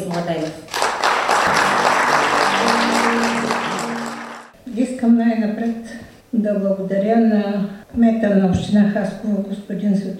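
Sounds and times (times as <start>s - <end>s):
speech: 0.2s - 0.7s, 5.0s - 10.1s
audience applause at a ceremony honouring an honorary citizen of Haskovo: 0.7s - 4.6s.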